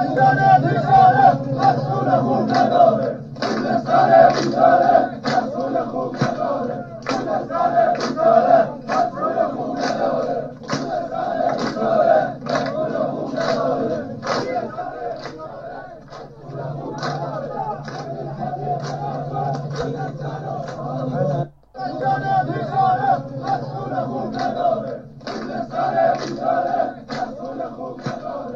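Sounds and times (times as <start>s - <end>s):
protest crowd chanting slogans: 0.0s - 28.5s.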